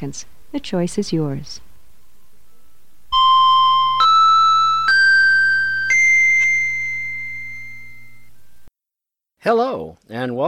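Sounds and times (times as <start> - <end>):
speech: 0.0 - 1.7, 9.4 - 10.4
low steady hum: 0.0 - 8.7
ringing chime tones: 3.1 - 8.7.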